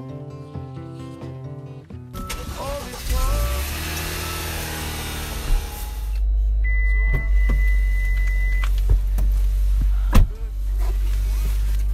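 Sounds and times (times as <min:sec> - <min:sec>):
car driving: 0:02.2 - 0:11.9.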